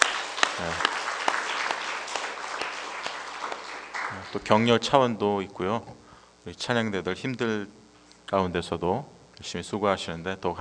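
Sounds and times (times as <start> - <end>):
audience applauding: 0.0 - 4.9
speech: 0.6 - 0.9, 4.3 - 10.6.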